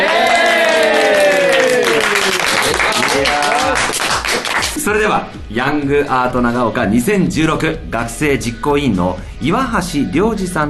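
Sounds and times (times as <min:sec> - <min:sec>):
applause: 0:00.0 - 0:04.8
speech: 0:04.9 - 0:10.6.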